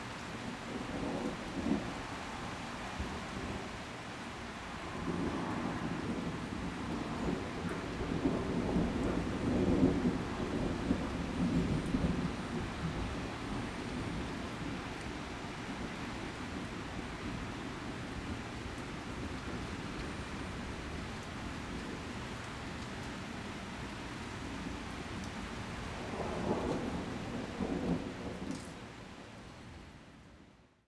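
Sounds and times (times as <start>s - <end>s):
rain drizzle in a swamp: 0.0s - 30.5s
distant thunder: 4.9s - 14.7s, 25.9s - 28.6s.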